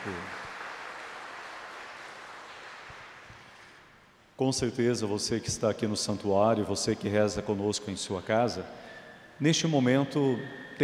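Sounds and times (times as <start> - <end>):
speech: 0.0 - 0.4, 4.4 - 10.8
audience applause: 0.0 - 3.6.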